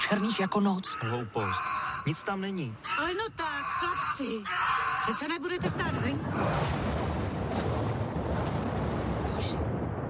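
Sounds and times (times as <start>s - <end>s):
speech: 0.1s - 6.9s
thunder of a winter storm rumbling: 5.5s - 10.0s.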